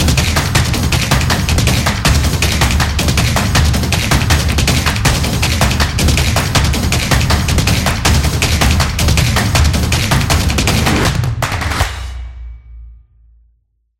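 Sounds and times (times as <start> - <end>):
percussion drums: 0.0 - 12.7.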